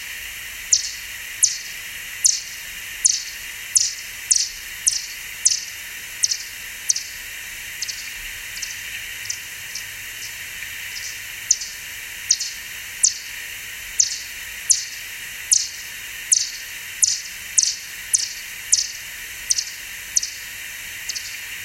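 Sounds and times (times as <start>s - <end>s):
steady background hiss: 0.0s - 21.6s
bat echolocation calls: 0.6s - 21.6s.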